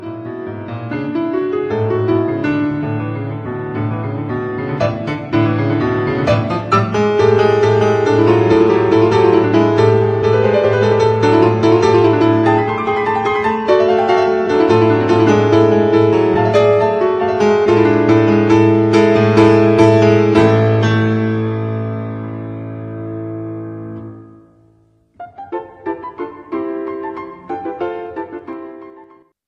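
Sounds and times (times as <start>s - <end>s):
rondo on Slovak folk tunes: 0.0s - 29.3s.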